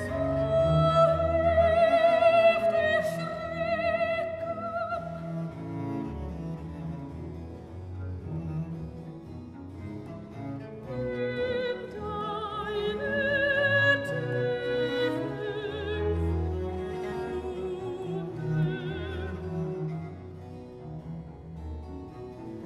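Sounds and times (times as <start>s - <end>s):
alto vocal singing classical piece: 0.0s - 5.6s, 10.8s - 20.0s.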